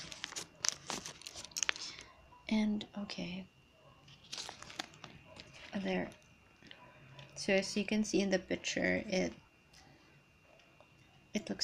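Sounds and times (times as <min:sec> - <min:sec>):
banana leaves crinkling as wrapped food is unwrapped: 0:00.0 - 0:02.0, 0:04.1 - 0:05.8
speech: 0:02.5 - 0:03.6, 0:05.8 - 0:06.2, 0:07.4 - 0:09.4, 0:11.4 - 0:11.6.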